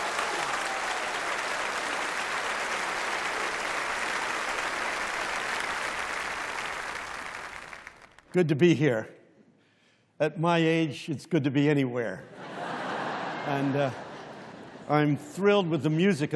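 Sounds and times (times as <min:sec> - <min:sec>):
audience applause welcoming speaker Tony Campolo at a gathering: 0:00.0 - 0:08.4
speech: 0:08.4 - 0:09.2, 0:10.2 - 0:12.4, 0:13.5 - 0:14.0, 0:14.9 - 0:16.3
laughter: 0:12.3 - 0:15.2.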